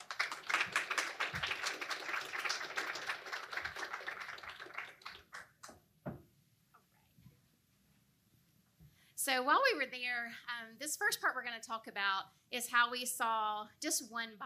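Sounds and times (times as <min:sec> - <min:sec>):
audience applause welcoming speakers at a church missions recap: 0:00.0 - 0:05.7
speech: 0:09.3 - 0:14.4.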